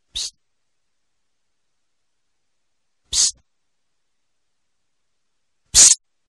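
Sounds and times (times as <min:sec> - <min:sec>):
person whispering psst: 0:00.0 - 0:00.4, 0:03.1 - 0:03.4.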